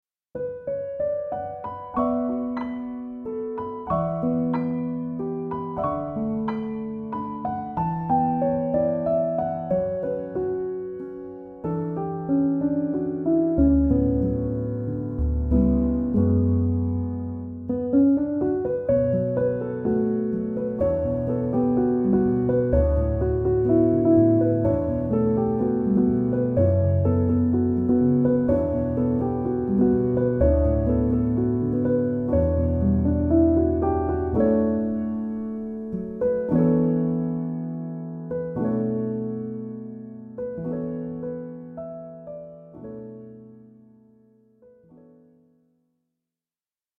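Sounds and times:
piano instrumental: 0.3 - 45.6.

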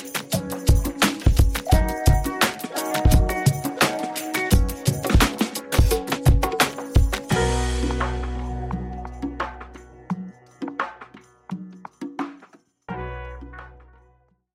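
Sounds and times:
chill-out and lounge strings: 0.0 - 11.0.

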